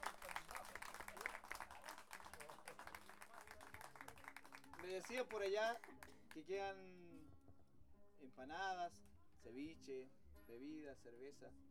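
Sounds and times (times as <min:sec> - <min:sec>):
crowd applause: 0:00.0 - 0:05.4
speech: 0:04.8 - 0:07.2, 0:08.2 - 0:11.6.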